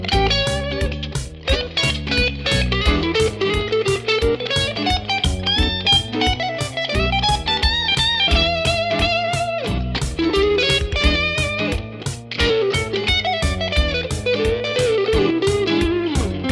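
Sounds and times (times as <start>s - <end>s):
blues shuffle solo: 0.0s - 16.4s.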